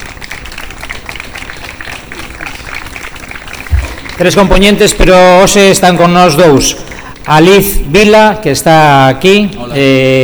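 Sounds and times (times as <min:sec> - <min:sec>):
audience applause: 0:00.0 - 0:05.6
speech: 0:04.2 - 0:10.2.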